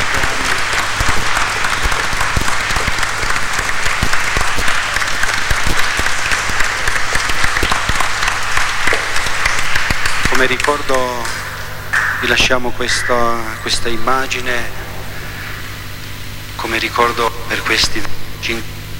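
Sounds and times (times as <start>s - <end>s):
audience applauding: 0.0s - 15.8s
speech: 10.4s - 11.4s, 12.2s - 14.8s, 16.7s - 18.7s.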